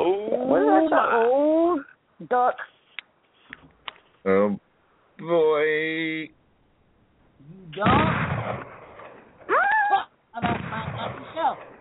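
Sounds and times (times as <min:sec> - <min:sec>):
speech: 0:00.5 - 0:02.7, 0:04.2 - 0:04.6, 0:05.2 - 0:06.4, 0:07.5 - 0:08.7
shotgun blast: 0:07.8 - 0:09.3, 0:10.4 - 0:11.7.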